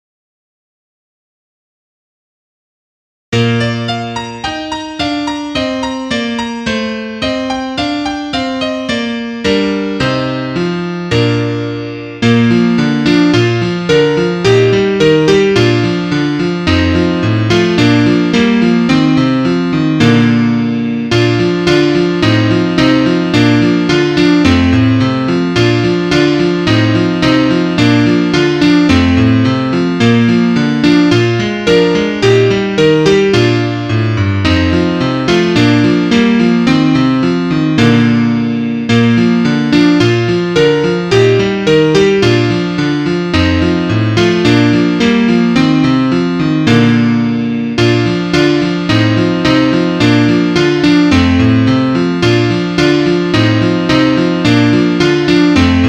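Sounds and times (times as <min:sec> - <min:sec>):
piano: 0:03.3 - 0:55.8.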